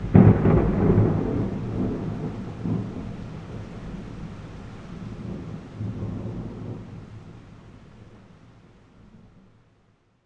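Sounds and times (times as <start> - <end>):
thunder: 0.0 - 7.2.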